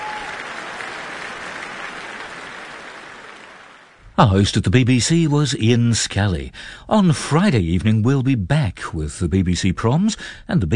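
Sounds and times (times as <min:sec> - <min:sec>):
concert audience applause: 0:00.0 - 0:04.0
speech: 0:04.2 - 0:10.7.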